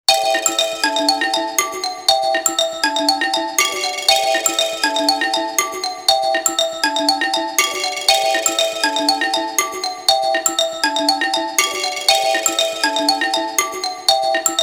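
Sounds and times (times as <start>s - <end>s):
xylophone loop: 0.1s - 14.6s.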